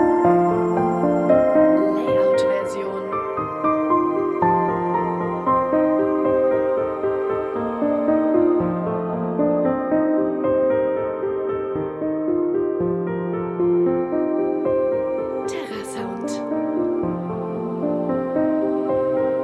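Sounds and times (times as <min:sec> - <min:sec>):
piano: 0:00.0 - 0:19.4.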